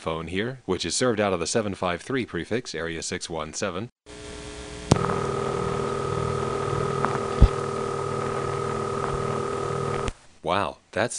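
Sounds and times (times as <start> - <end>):
speech: 0.0 - 4.3, 10.5 - 11.1
low hum: 4.1 - 10.1
sharp click: 4.9 - 5.2
continuous ringing tone bleeding onto a telephone line: 4.9 - 10.1.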